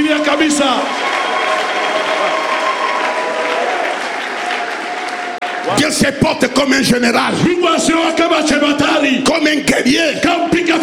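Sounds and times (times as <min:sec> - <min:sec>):
audience applauding: 0:00.0 - 0:06.2
speech: 0:00.2 - 0:01.0, 0:05.7 - 0:10.8.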